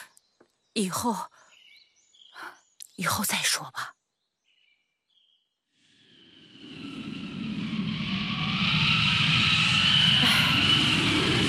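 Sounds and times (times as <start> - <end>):
speech: 0.8 - 1.4, 3.0 - 4.0
strong wind blowing: 6.7 - 11.4.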